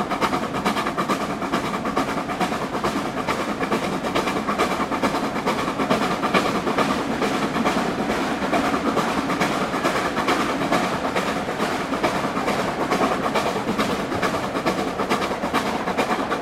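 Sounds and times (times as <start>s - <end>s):
train departing Leeds: 0.0s - 16.3s.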